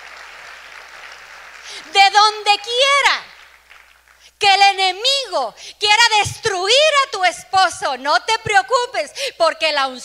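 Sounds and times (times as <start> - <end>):
audience applause: 0.0 - 1.7
speech: 1.8 - 3.3, 4.4 - 10.0.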